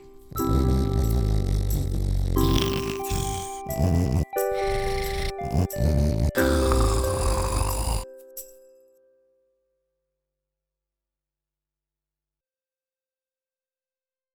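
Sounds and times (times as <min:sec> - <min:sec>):
snoring to a Christmas carol melody: 0:00.0 - 0:08.4.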